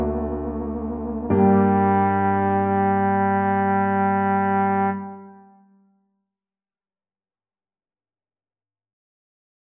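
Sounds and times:
trombone sonata: 0.0 - 5.6.

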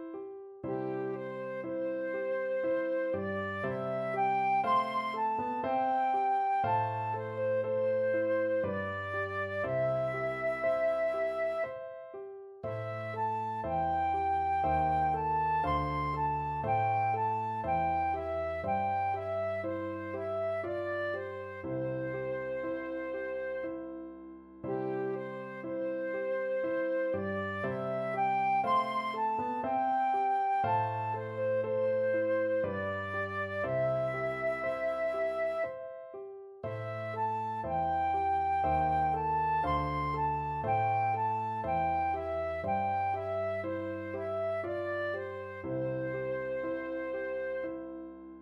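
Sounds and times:
two flutes playing karaoke backing: 0.7 - 11.9, 12.7 - 23.8, 24.7 - 35.9, 36.7 - 47.9.

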